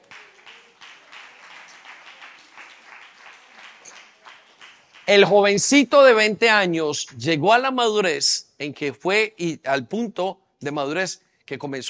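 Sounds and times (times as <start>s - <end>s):
audience applause: 0.0s - 5.4s
speech: 5.1s - 11.8s.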